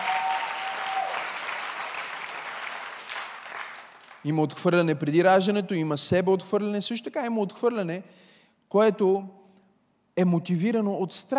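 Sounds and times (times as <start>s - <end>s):
audience applause: 0.0s - 4.2s
speech: 4.2s - 9.4s, 10.2s - 11.3s.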